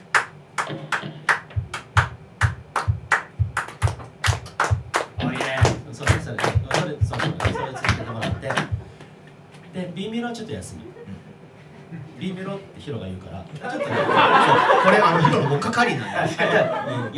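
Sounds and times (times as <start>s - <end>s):
audience clapping a steady rhythm: 0.0s - 9.1s
laughter: 7.1s - 8.8s, 13.6s - 17.1s
speech: 10.0s - 10.9s, 12.2s - 17.1s.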